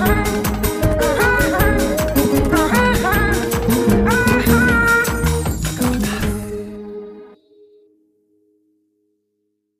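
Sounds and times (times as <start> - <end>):
techno remix: 0.0 - 7.2.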